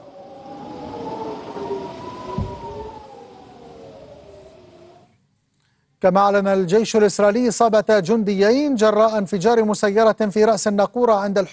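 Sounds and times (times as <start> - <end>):
air raid warning sirens wailing: 0.0 - 5.2
low rumble: 0.0 - 5.2
speech: 6.0 - 11.5.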